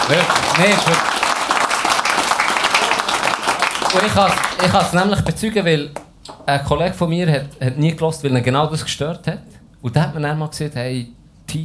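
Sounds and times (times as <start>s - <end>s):
applause: 0.0s - 5.1s
speech: 0.1s - 1.3s, 3.9s - 11.6s.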